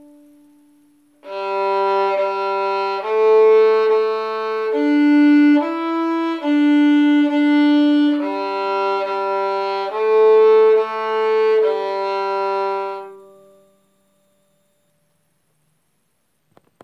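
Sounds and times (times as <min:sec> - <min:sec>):
bowed violin: 0:00.0 - 0:14.4.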